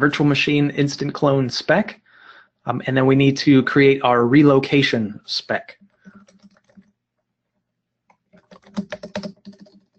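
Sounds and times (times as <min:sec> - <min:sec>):
speech: 0:00.0 - 0:02.0, 0:02.6 - 0:05.8
typing on a computer keyboard: 0:05.8 - 0:06.9, 0:08.1 - 0:09.9.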